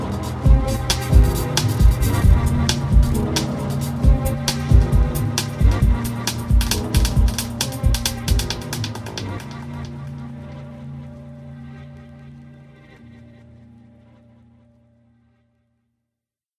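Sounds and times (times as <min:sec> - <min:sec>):
electronic music: 0:00.0 - 0:12.8.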